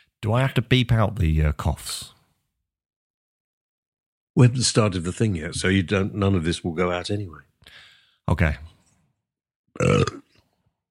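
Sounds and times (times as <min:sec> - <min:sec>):
speech: 0:00.2 - 0:02.2, 0:04.4 - 0:08.7, 0:09.8 - 0:10.2
loud low burp: 0:09.7 - 0:10.5.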